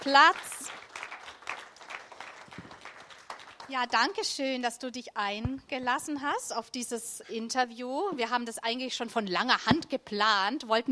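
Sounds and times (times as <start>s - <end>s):
speech: 0.0s - 0.5s, 3.7s - 10.9s
audience applauding to welcome a guest to the stage: 0.0s - 4.2s.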